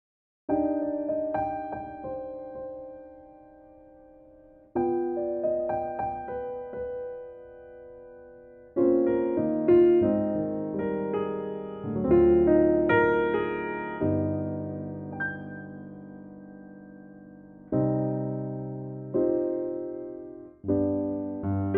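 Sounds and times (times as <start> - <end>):
piano verse in C: 0.5 - 21.7.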